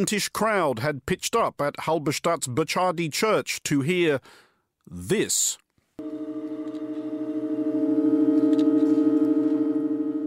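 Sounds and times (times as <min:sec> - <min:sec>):
speech: 0:00.0 - 0:06.2
church organ chord: 0:06.0 - 0:10.2.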